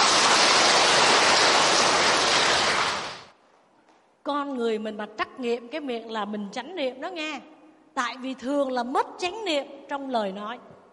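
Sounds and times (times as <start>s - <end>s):
round of applause: 0.0s - 3.3s
speech: 4.2s - 10.7s.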